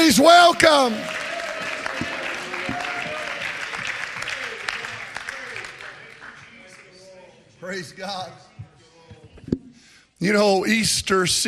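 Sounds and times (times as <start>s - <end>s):
church congregation clapping hands during worship: 0.0s - 7.3s
speech: 0.1s - 1.2s, 7.7s - 8.5s, 10.2s - 11.4s.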